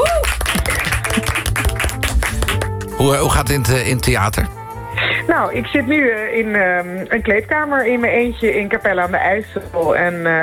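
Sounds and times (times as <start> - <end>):
warm crowd applause: 0.0 - 2.9
speech: 3.0 - 4.6, 5.3 - 10.4.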